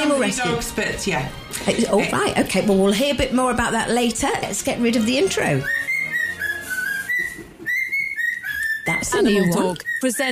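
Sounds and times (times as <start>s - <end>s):
speech: 0.2s - 5.8s, 9.0s - 10.3s
cockatiel whistling a tune: 5.6s - 10.3s.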